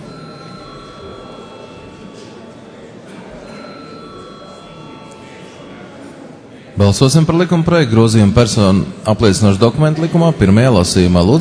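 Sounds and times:
parliament chamber bell ringing: 0:00.0 - 0:02.7, 0:03.4 - 0:06.0
murmur: 0:00.0 - 0:11.3
speech: 0:06.8 - 0:11.3.

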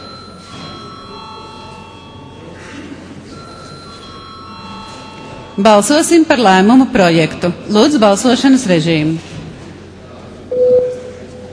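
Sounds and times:
parliament chamber electric bell ringing: 0:00.0 - 0:02.5, 0:03.4 - 0:06.3
low murmur: 0:00.0 - 0:11.5
speech: 0:05.6 - 0:09.3.

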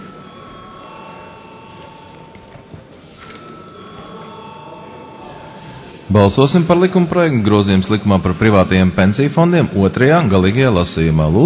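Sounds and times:
parliament chamber electric bell ringing before vote: 0:00.0 - 0:07.0
speech: 0:06.1 - 0:11.4.

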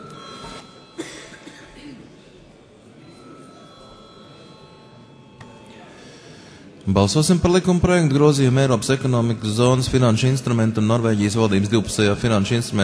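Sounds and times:
parliament chamber electronic bell ringing: 0:00.0 - 0:01.8, 0:02.8 - 0:06.5
faint murmuring: 0:00.0 - 0:06.9
speech: 0:06.9 - 0:12.8.

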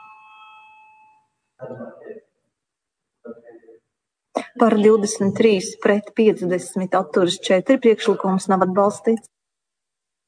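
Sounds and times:
parliament voting bell, electronic chime: 0:00.0 - 0:01.5
speech: 0:01.6 - 0:02.3, 0:04.6 - 0:09.3.

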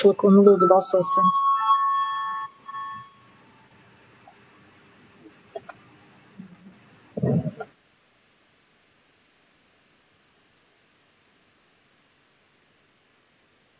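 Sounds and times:
speech: 0:00.0 - 0:01.5
parliament voting bell: 0:00.0 - 0:03.7.

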